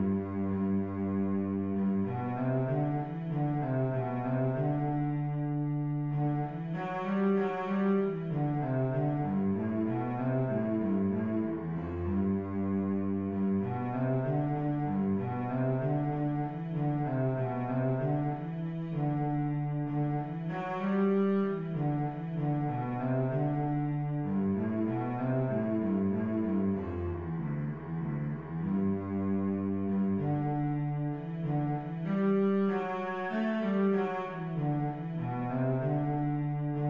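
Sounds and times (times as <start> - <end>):
cello: 0.0 - 36.8.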